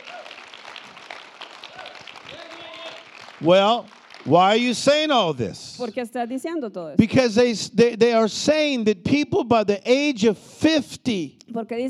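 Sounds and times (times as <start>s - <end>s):
audience clapping: 0.0s - 5.6s
speech: 3.4s - 11.8s.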